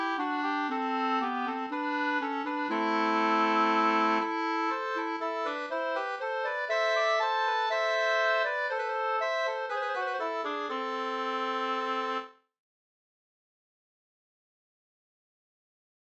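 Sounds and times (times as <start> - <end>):
two-part Dalarna wedding march from Uppland: 0.0 - 12.2.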